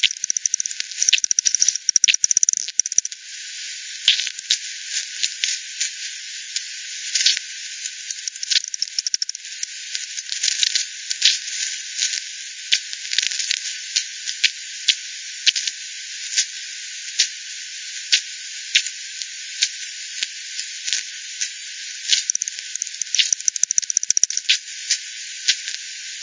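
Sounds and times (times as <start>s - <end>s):
bat echolocation clicks: 0.0s - 3.2s, 7.2s - 11.4s, 22.1s - 24.6s
constant hiss: 0.0s - 26.2s.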